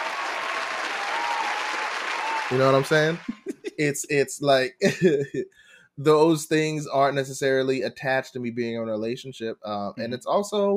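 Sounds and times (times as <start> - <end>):
applause: 0.0 - 3.5
speech: 2.5 - 10.7
laughter: 2.7 - 5.4.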